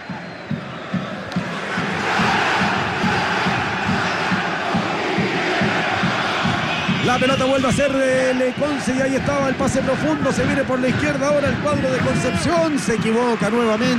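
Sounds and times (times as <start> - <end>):
football fans chanting in stadium in Rancagua: 0.0 - 7.7
speech: 7.2 - 13.9.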